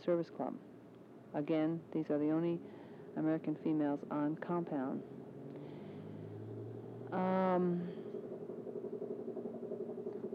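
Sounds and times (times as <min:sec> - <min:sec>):
speech: 0:00.0 - 0:00.7, 0:01.3 - 0:05.2, 0:07.1 - 0:08.0
helicopter flying overhead: 0:02.5 - 0:10.3
loud sustained harmonic tone: 0:05.1 - 0:10.3.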